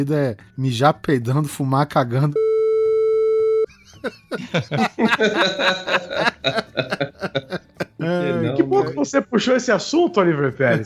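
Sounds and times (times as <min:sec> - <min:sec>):
speech: 0:00.0 - 0:02.4, 0:04.0 - 0:10.8
censorship bleep tone: 0:02.3 - 0:03.7
people chuckling and laughing: 0:03.7 - 0:08.9.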